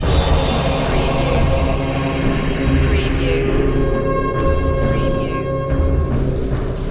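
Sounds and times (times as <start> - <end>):
heroic music: 0.0 - 6.8.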